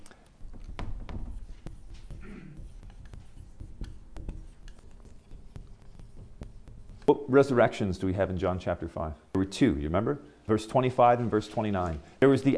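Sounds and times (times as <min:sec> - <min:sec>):
handwriting scratching during a Bible lesson: 0:00.3 - 0:07.8
speech: 0:07.1 - 0:12.5.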